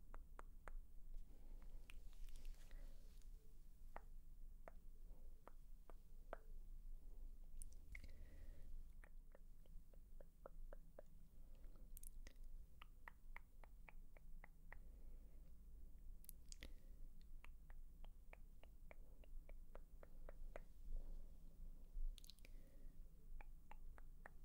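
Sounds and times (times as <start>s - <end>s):
soft hissy breaths: 0.0s - 24.4s
crisp mouth clicks and tongue taps: 0.1s - 0.9s, 3.9s - 6.5s, 7.6s - 14.9s, 16.2s - 20.8s, 22.1s - 22.6s, 23.4s - 24.4s.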